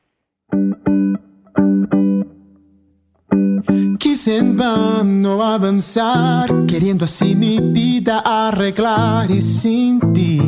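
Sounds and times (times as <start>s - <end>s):
worship song instrumental intro: 0.5s - 10.4s
speech: 4.1s - 10.4s.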